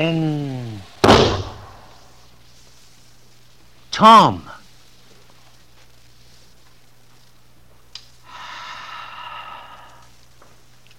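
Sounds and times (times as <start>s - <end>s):
speech: 0.0s - 0.6s, 4.0s - 4.6s
gunshot muffled by a blanket wrapped around the gun: 1.0s - 1.9s.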